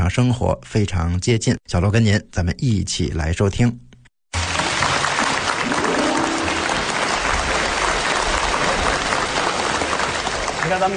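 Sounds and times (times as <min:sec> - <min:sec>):
speech: 0:00.1 - 0:03.8, 0:10.7 - 0:10.9
audience applause: 0:04.4 - 0:10.9.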